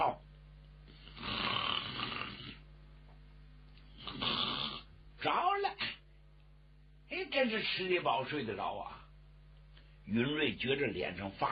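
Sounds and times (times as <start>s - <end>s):
voice imitating snoring: 1.0s - 2.6s, 4.0s - 4.9s
speech: 7.4s - 9.0s, 10.1s - 11.4s.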